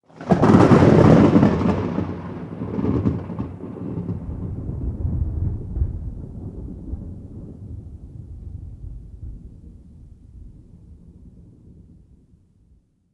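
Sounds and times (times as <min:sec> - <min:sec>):
close thunder strike heard indoors: 0:00.2 - 0:11.9.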